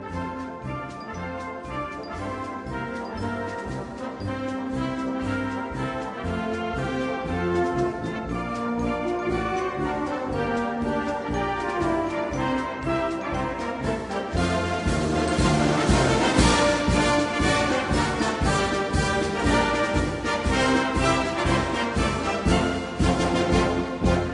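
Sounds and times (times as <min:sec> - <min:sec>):
Soviet military march music: 0:00.0 - 0:24.3.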